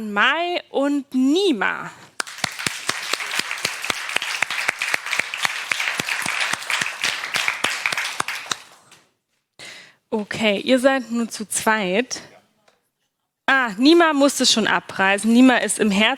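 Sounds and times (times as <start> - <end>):
speech: 0.0 - 2.1, 10.1 - 12.3, 13.5 - 16.1
thunderous applause from audience: 2.2 - 8.8.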